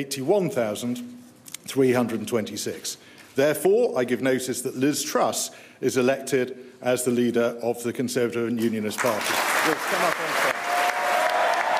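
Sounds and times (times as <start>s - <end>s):
speech: 0.0s - 10.5s
large crowd applause: 9.0s - 11.7s.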